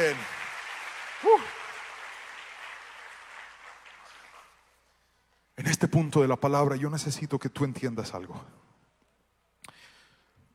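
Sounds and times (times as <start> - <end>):
applause: 0.0 - 5.0
speech: 5.8 - 8.6.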